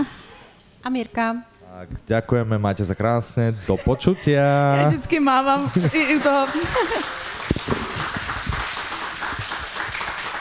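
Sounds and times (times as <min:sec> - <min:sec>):
speech: 0:00.8 - 0:07.2
laughter: 0:05.6 - 0:07.4
applause, standing ovation: 0:05.7 - 0:10.3.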